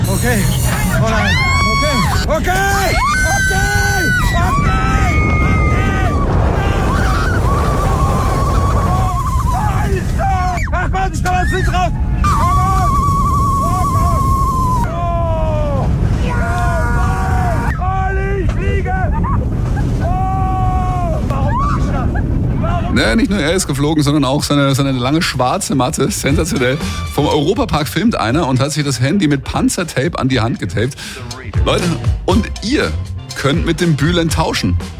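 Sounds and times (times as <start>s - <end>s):
people screaming and whooping on roller coaster: 0.0s - 23.8s
roller coaster ride at 130 km/h: 0.0s - 28.4s
speech: 0.2s - 4.8s, 22.9s - 34.9s.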